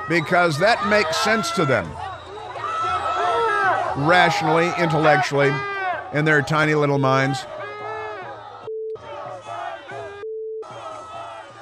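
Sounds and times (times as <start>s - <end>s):
protest crowd chanting and yelling: 0.0s - 11.6s
speech: 0.1s - 2.1s, 4.0s - 7.5s
high-pitched censor bleep: 8.7s - 9.0s, 10.2s - 10.6s.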